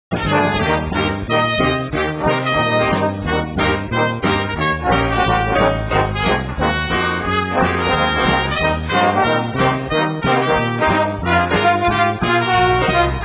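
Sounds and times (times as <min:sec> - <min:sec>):
trumpet: 0:00.1 - 0:13.2.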